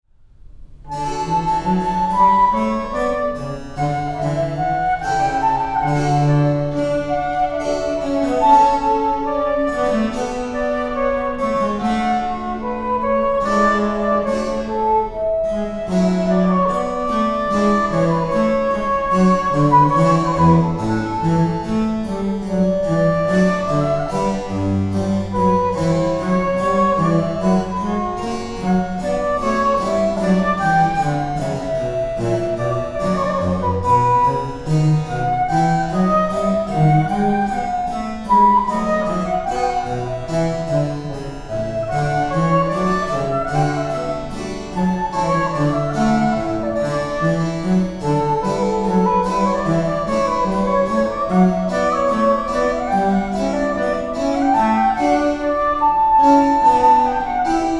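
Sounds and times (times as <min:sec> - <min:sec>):
flute sonata in D, affettuoso movement: 0:00.8 - 0:57.7.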